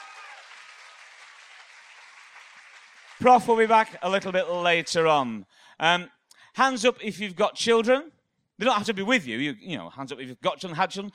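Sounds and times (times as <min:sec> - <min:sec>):
audience applause: 0:00.0 - 0:03.7
speech: 0:03.2 - 0:11.1.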